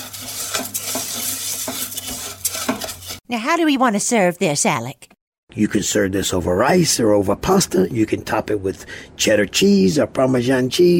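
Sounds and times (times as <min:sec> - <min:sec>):
stirring crawfish tails into sauce in pan: 0:00.0 - 0:03.2
speech: 0:03.3 - 0:10.9.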